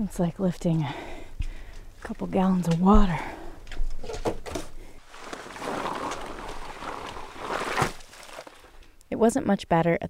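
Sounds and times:
speech: 0.0 - 1.1, 2.0 - 3.4, 9.2 - 10.0
wet slushy snow splashing on the ground in Juneau: 5.1 - 8.7.

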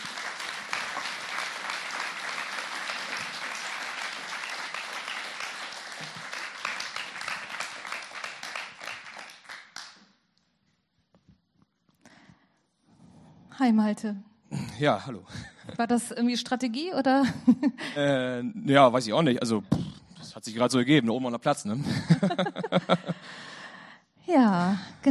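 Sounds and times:
audience applause: 0.0 - 10.1
speech: 13.6 - 19.7, 20.4 - 23.5, 24.3 - 25.0
laughter: 21.8 - 23.4.

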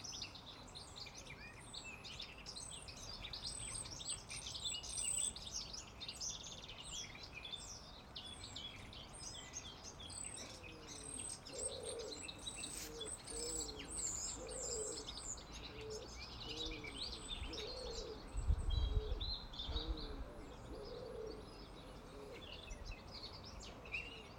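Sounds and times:
birds chirping and singing in Leatherhead: 0.0 - 24.3
lower cooing call: 10.4 - 22.8.

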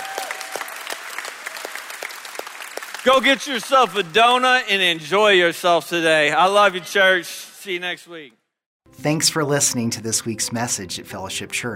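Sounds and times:
audience applauding and cheering in praise: 0.0 - 5.6
speech: 3.0 - 8.4, 9.0 - 11.7.

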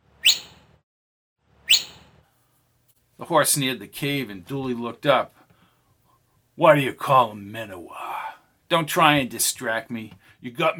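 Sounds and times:
whistling through cupped hand: 0.0 - 0.6, 1.7 - 2.1
speech: 3.2 - 5.4, 6.6 - 10.7.

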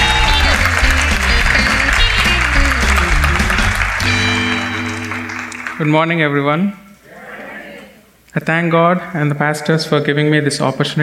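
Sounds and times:
audience applause welcoming a speaker at a church service: 0.0 - 6.3
speech: 5.8 - 6.8, 8.4 - 11.0.

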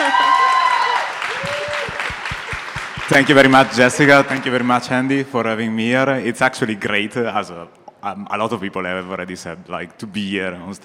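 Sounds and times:
audience applause: 0.0 - 5.2
speech: 3.1 - 10.8.

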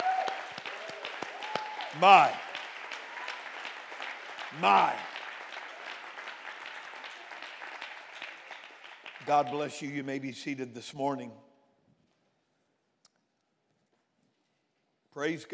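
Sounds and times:
audience clapping hands: 0.0 - 10.4
speech: 2.0 - 2.4, 4.5 - 5.1, 9.3 - 11.4, 15.2 - 15.5.

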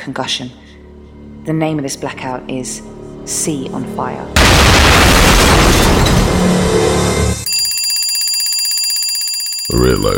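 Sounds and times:
speech: 0.0 - 0.6, 1.5 - 7.1, 9.7 - 10.1
bomb exploding: 4.4 - 7.0.

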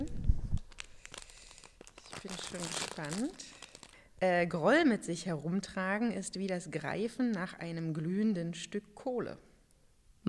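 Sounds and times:
fortune cookie plastic wrapper crinkling: 0.0 - 4.2
speech: 2.2 - 3.6, 4.2 - 9.5.

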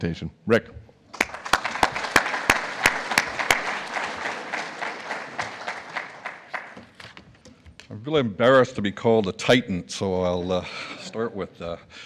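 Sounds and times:
speech: 0.0 - 1.2, 8.0 - 12.0
audience applause: 1.1 - 7.2.

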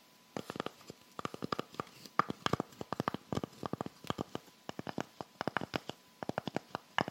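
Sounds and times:
rhinestone fingernails tapping on many hard surfaces: 0.4 - 7.0.

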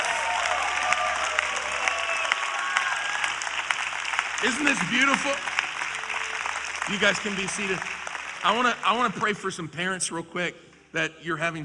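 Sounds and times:
audience cheering: 0.0 - 8.8
applause: 0.0 - 9.6
speech: 4.4 - 5.6, 6.9 - 11.6.

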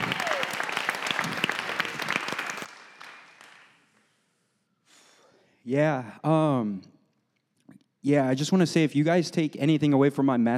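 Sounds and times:
audience applause: 0.0 - 3.9
speech: 5.7 - 6.9, 8.0 - 10.5.

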